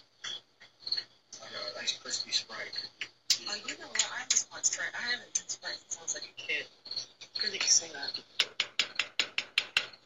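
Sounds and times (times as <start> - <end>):
speech: 1.8 - 8.8
police officers knocking on a door: 8.4 - 10.0.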